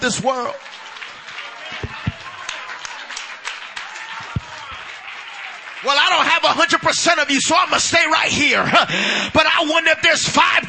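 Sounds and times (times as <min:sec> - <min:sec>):
speech: 0:00.0 - 0:00.8, 0:05.8 - 0:10.6
audience clapping hands: 0:00.0 - 0:08.1.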